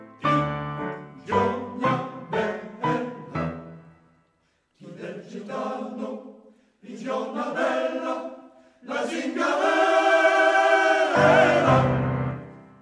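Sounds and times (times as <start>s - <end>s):
men's choir singing: 1.2s - 3.5s, 4.8s - 12.6s.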